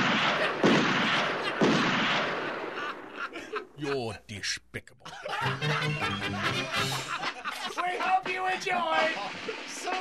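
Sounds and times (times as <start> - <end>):
booming gunshot blasts: 0.0 - 2.8
laughter: 2.4 - 4.0, 5.0 - 9.9
speech: 3.8 - 9.9.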